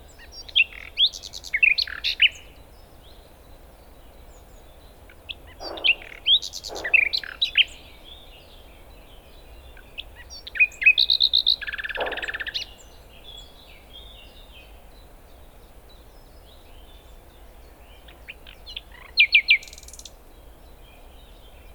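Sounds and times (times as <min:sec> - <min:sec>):
common nightingale Luscinia megarhynchos in full song: 0:00.0 - 0:21.7.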